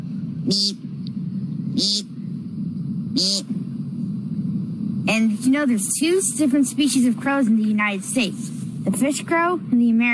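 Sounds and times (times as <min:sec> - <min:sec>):
steady low hum: 0:00.0 - 0:10.1
person imitating an American woodcock nasal buzzy peent call: 0:00.4 - 0:00.8, 0:01.7 - 0:02.2, 0:03.1 - 0:03.6
speech: 0:00.5 - 0:00.9, 0:01.8 - 0:02.1, 0:05.4 - 0:10.1.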